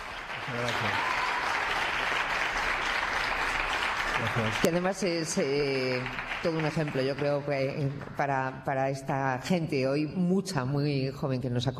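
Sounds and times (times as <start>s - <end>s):
audience applause: 0.0s - 8.3s
speech: 0.5s - 1.1s, 4.2s - 11.7s.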